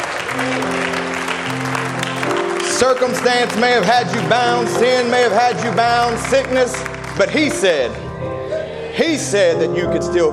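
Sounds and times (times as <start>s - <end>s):
audience clapping hands in praise: 0.0s - 8.0s
sustained organ-like tones: 0.0s - 10.3s
speech: 2.8s - 8.0s, 9.0s - 10.3s.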